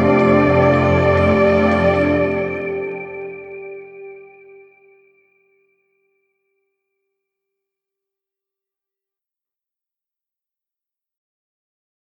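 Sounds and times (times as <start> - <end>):
digital pad sound: 0.0 - 4.7
bells: 0.0 - 5.1.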